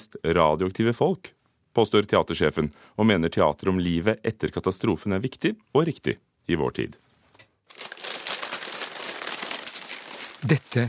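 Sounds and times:
speech: 0.0 - 7.0, 10.4 - 10.8
roll of brown paper being crinkled: 7.7 - 10.8.

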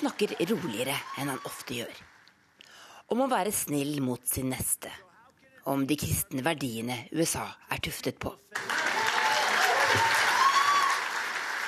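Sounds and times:
speech: 0.0 - 2.1, 3.1 - 8.8, 9.9 - 10.2
audience applause: 0.0 - 2.3, 8.6 - 11.6.

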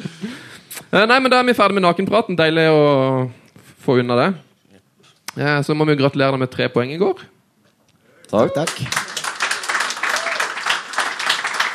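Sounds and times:
speech: 0.9 - 4.4, 5.4 - 7.3, 8.3 - 9.0
crowd applauding: 8.3 - 11.7.

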